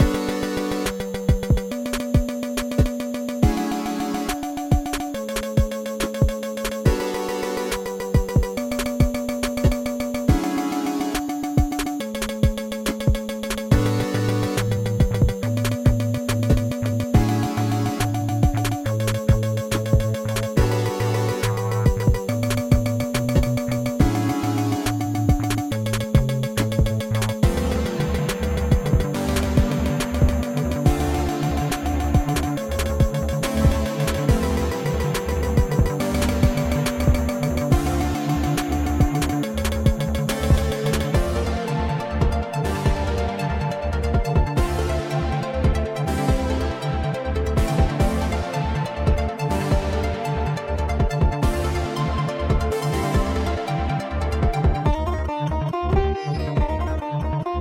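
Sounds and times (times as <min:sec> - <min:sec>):
puzzle game music: 0:00.0 - 0:57.4.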